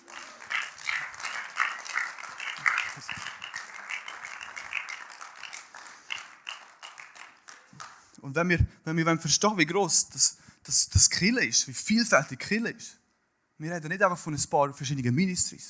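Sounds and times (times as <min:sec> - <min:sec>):
audience applause: 0:00.0 - 0:08.1
speech: 0:08.2 - 0:13.0, 0:13.6 - 0:15.6.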